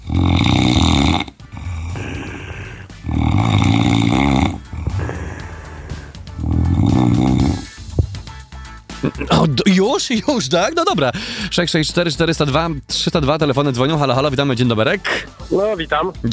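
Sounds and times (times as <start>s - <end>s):
recorded person snoring: 0.0s - 8.1s
breathy inhales: 0.0s - 8.2s, 11.1s - 11.6s
speech: 9.4s - 16.3s.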